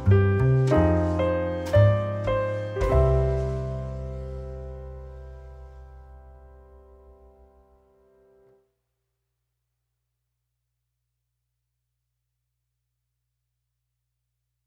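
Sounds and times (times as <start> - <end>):
jazz horn in F: 0.0 - 6.5.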